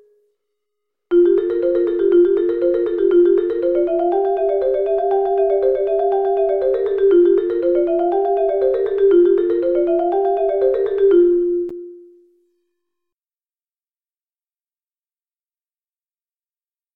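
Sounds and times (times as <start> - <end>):
musical scales: 1.1 - 12.2.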